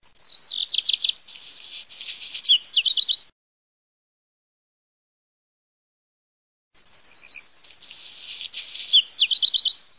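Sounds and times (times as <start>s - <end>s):
Black redstart song: 0.0s - 3.3s, 6.8s - 9.9s.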